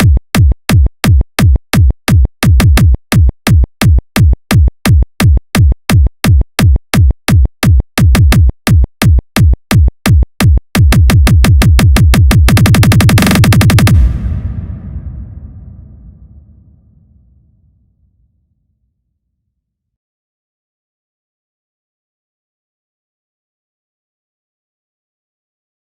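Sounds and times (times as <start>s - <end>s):
kick drum: 0.0s - 17.0s.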